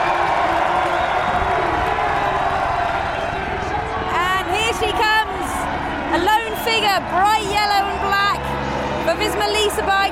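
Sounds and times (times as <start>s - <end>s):
crowd cheering: 0.0s - 10.1s
speech: 9.1s - 10.1s.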